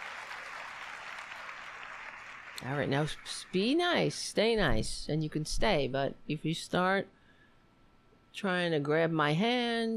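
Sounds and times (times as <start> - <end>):
polite applause: 0.0 - 4.0
speech: 2.6 - 7.2, 8.4 - 9.9.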